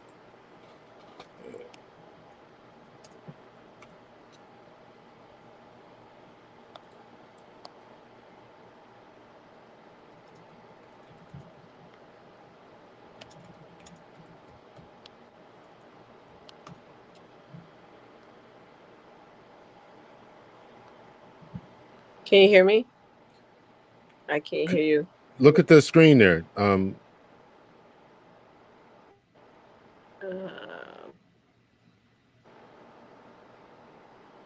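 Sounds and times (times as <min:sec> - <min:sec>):
hiss: 0:00.0 - 0:34.4
typing on a computer keyboard: 0:03.0 - 0:04.4, 0:06.7 - 0:07.8, 0:10.1 - 0:11.7, 0:13.2 - 0:17.3
speech: 0:22.3 - 0:22.9, 0:24.4 - 0:27.0.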